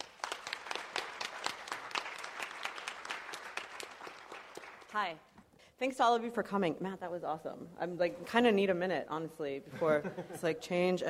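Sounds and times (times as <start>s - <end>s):
crowd applauding: 0.0s - 5.2s
speech: 5.0s - 11.0s.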